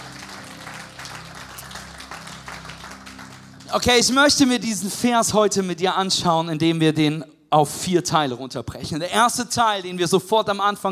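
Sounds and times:
audience applause: 0.0 - 4.2
speech: 3.7 - 10.8.

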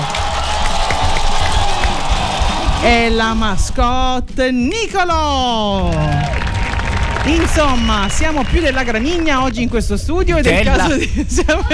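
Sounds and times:
applause: 0.0 - 2.8, 5.8 - 9.6
speech: 2.8 - 6.4, 7.2 - 11.7
laughter: 10.4 - 11.7.

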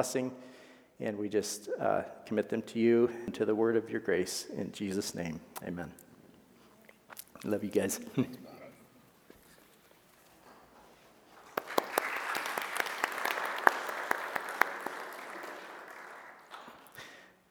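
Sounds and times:
speech: 0.0 - 6.0, 7.4 - 8.5
audience applause: 11.3 - 17.2.

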